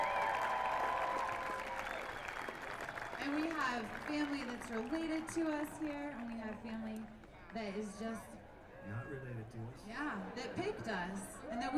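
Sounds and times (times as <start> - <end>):
audience applause: 0.0 - 8.0
speech: 3.2 - 11.7.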